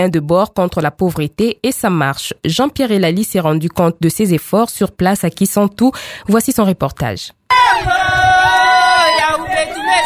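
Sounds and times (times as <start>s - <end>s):
speech: 0.0s - 8.5s
about twenty women singing a welcoming chant in fields near Kisantu: 7.5s - 8.8s.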